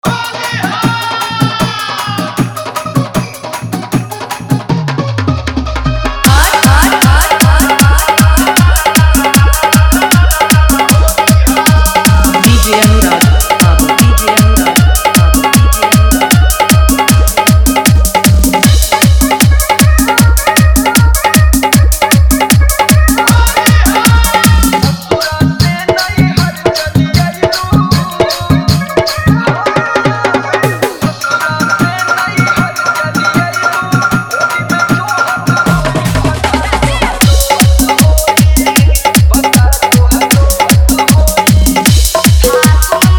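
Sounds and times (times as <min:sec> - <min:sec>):
dholak bass dance mix: 0:00.0 - 0:43.1.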